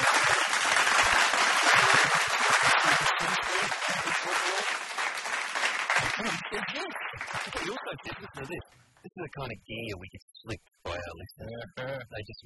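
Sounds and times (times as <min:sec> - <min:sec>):
laughter: 0:00.0 - 0:05.0, 0:05.7 - 0:10.2, 0:10.9 - 0:12.4
crowd applause: 0:00.0 - 0:08.6
speech: 0:09.2 - 0:12.4.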